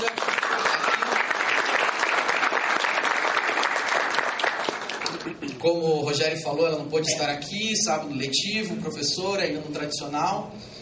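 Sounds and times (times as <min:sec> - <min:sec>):
audience applause: 0:00.0 - 0:05.4
speech: 0:05.6 - 0:10.8.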